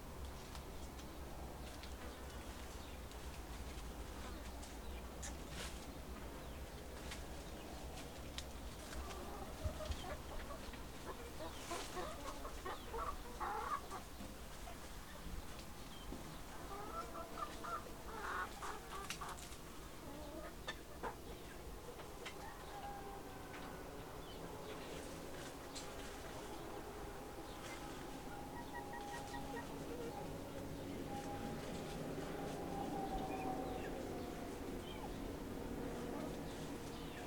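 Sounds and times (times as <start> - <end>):
afternoon farm nature sounds: 0.0 - 37.2.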